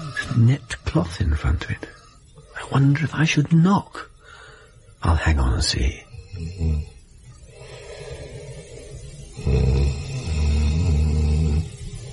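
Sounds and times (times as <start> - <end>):
speech: 0.3 - 2.0, 2.6 - 4.1, 5.0 - 7.0, 9.4 - 10.0
man snoring while asleep: 6.1 - 12.1.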